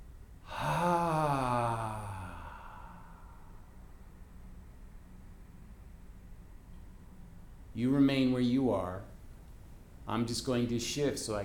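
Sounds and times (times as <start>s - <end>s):
deep voiced exhale during a guided meditation: 0.5s - 3.6s
speech: 7.8s - 9.0s, 10.1s - 11.4s.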